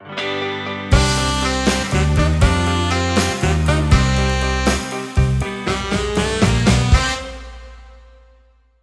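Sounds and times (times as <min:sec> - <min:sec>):
free spin outro music: 0:00.2 - 0:08.4.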